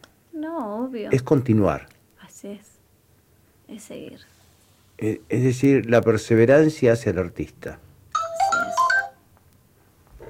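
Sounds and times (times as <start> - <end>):
speech: 0.4 - 2.7, 3.7 - 4.4, 5.0 - 7.9
phone message notification chime: 8.2 - 9.2.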